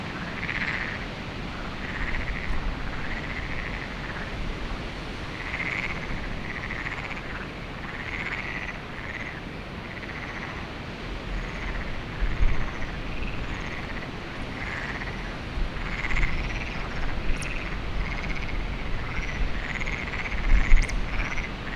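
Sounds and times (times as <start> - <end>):
frog chorus of overlapping rattling trills at Lagoa do Canário: 0.1 - 4.4, 5.3 - 10.6, 11.3 - 21.7.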